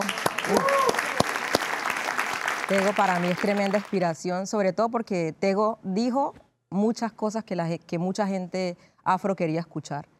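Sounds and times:
crowd applause: 0.0s - 4.0s
speech: 2.7s - 10.1s.

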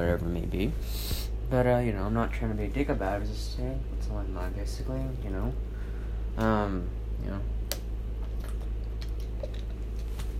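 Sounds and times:
speech: 0.0s - 5.7s, 6.4s - 7.6s
person drinking water: 8.2s - 10.2s.

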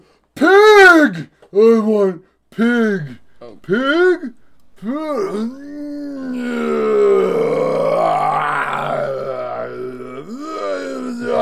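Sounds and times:
speech: 1.1s - 5.9s
person imitating the snoring of a giant creature: 3.4s - 11.4s.

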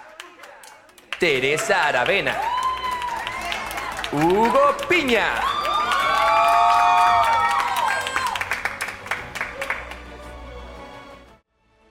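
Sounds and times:
audience applause: 0.0s - 10.3s
speech: 1.2s - 2.6s, 4.1s - 5.6s
crowd cheering and whooping: 1.2s - 10.2s.

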